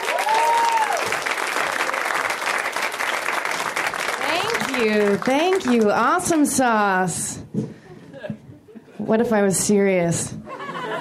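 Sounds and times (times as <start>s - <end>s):
comedy club audience applauding a comic: 0.0s - 6.2s
speech: 4.8s - 7.7s, 9.0s - 10.4s
laughter: 7.9s - 9.1s, 10.4s - 11.0s.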